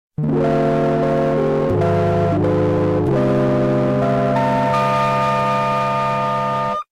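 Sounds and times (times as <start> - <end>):
slowed distorted game over jingle: 0.2 - 6.8.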